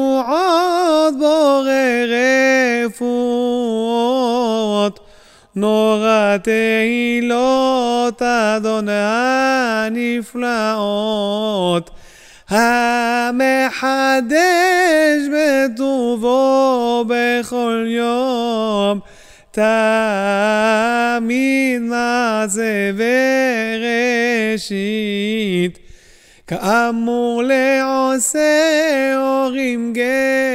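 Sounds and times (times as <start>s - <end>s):
prayer chant to the melody of a folk tune: 0.0s - 25.8s, 26.4s - 30.5s.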